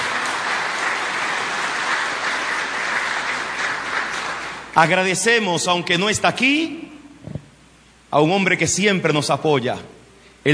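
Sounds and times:
audience applause: 0.0s - 4.8s
speech: 4.8s - 6.9s, 8.1s - 10.5s.

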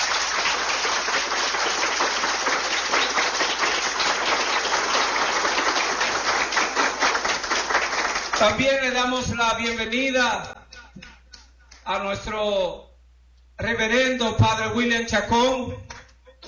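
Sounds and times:
audience applause: 0.0s - 8.7s
speech: 8.4s - 10.6s, 11.9s - 12.9s, 13.6s - 15.9s.

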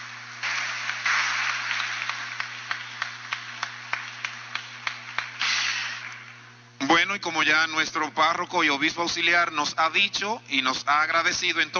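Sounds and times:
audience applause: 0.0s - 6.3s
speech: 7.1s - 11.7s.

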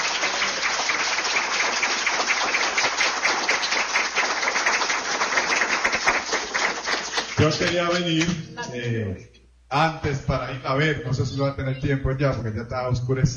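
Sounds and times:
audience clapping: 0.0s - 8.8s
speech: 7.4s - 13.3s.

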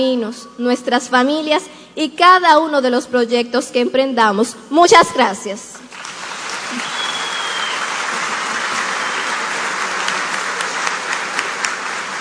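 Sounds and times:
speech: 0.0s - 5.9s, 6.7s - 7.0s
audience applause: 5.9s - 12.1s.

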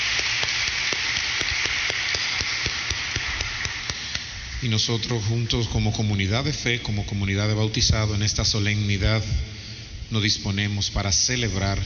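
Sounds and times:
audience applause: 0.0s - 4.3s
speech: 4.6s - 9.5s, 10.1s - 11.8s.

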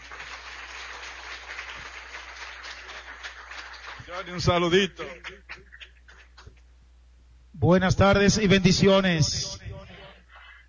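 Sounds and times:
audience applause: 0.0s - 5.4s
speech: 4.1s - 5.8s, 7.6s - 9.5s.

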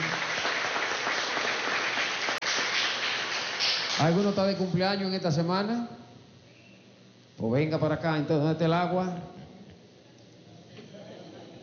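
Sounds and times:
audience applauding: 0.0s - 4.4s
speech: 4.0s - 6.0s, 7.4s - 9.4s.

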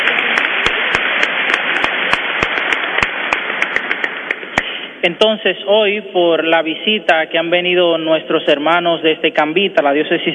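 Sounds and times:
audience applause: 0.0s - 4.8s
speech: 5.0s - 10.3s.

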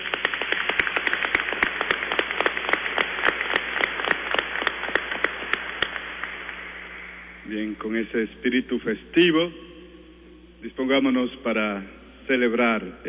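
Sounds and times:
applause: 0.0s - 7.1s
speech: 7.7s - 9.7s, 10.6s - 13.0s.

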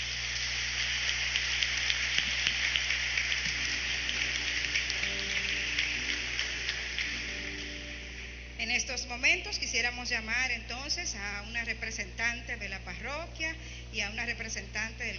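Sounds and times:
audience applause: 0.0s - 8.5s
speech: 8.9s - 15.1s.

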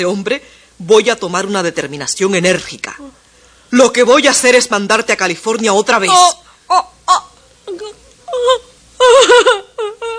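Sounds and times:
speech: 0.0s - 10.0s
woman crying and moaning: 6.1s - 10.1s.

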